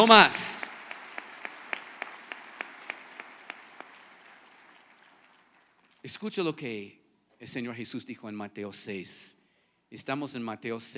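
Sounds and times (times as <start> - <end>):
speech: 0.0 - 0.5, 6.0 - 10.9
audience applause: 0.0 - 6.0.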